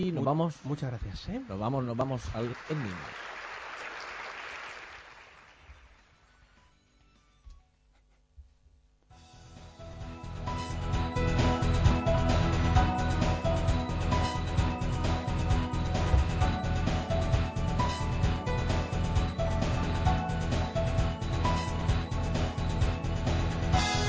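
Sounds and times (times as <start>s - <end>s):
speech: 0.0s - 4.0s
studio applause on a gaming show: 0.8s - 6.2s
loud music: 9.2s - 24.0s.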